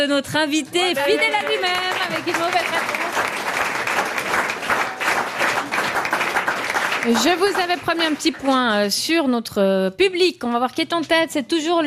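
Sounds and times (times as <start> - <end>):
speech: 0.0 - 3.4, 7.0 - 11.8
audience applause: 1.0 - 8.8.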